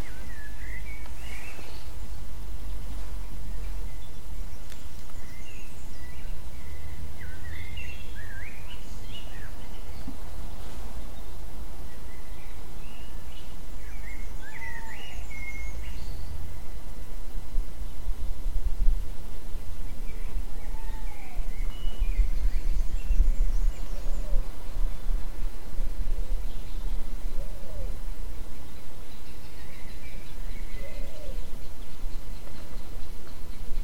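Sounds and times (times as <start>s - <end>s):
birds: 0.0s - 33.8s
owl: 14.0s - 16.0s, 20.1s - 22.0s, 26.5s - 28.1s, 29.2s - 33.6s.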